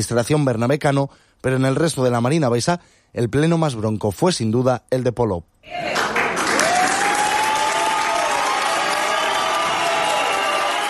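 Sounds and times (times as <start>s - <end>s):
speech: 0.0s - 6.2s
audience applause at council meeting: 5.8s - 10.8s.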